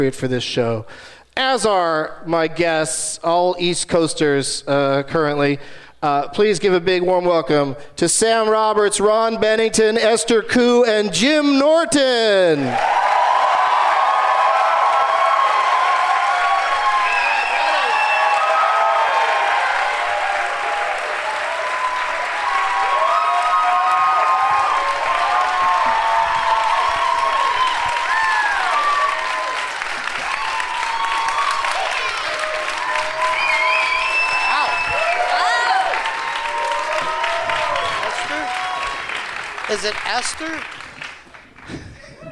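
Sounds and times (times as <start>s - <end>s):
speech: 0.0s - 13.0s
large crowd applauding: 12.5s - 42.2s.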